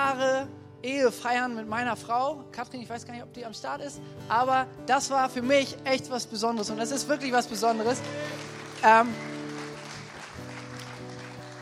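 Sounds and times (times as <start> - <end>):
speech: 0.4 - 9.3
cheers: 7.5 - 11.6
audience applause: 7.6 - 11.6.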